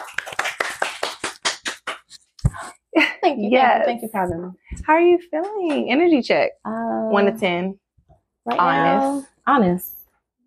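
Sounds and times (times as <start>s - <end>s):
people clapping: 0.0s - 2.6s
speech: 3.3s - 7.8s, 8.5s - 10.0s.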